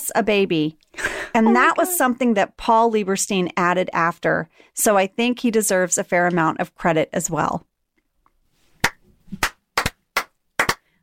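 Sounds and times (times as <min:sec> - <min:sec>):
speech: 0:00.1 - 0:07.7
slow clap building into big clap: 0:08.8 - 0:11.0.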